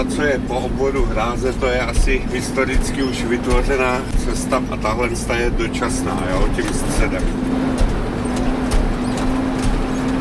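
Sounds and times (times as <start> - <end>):
speech: 0.0 - 7.6
car bouncing over potholes on dirt road: 0.0 - 10.2.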